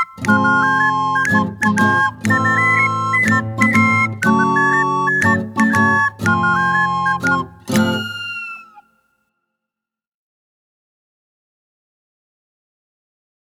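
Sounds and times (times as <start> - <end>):
person singing: 0.2 - 8.3.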